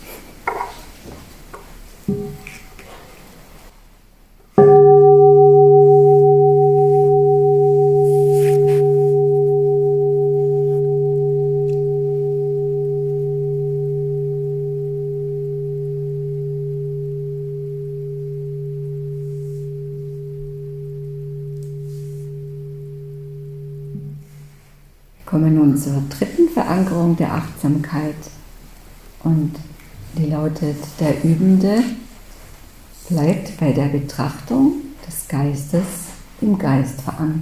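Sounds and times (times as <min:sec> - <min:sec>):
meditation bell ringing: 0:04.6 - 0:28.4
speech: 0:30.7 - 0:32.0, 0:33.1 - 0:37.3.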